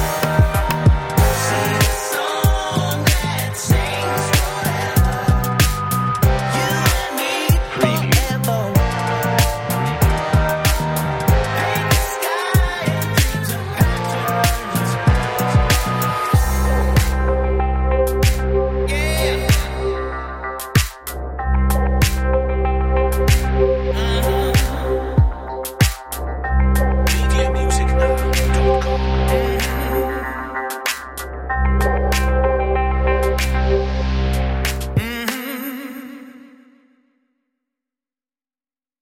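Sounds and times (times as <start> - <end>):
dark indie electronic music: 0.0 - 36.3.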